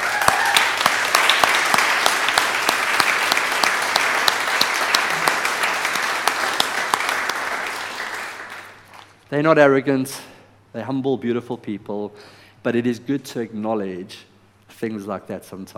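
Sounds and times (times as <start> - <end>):
audience applause: 0.0 - 9.0
speech: 9.3 - 15.7.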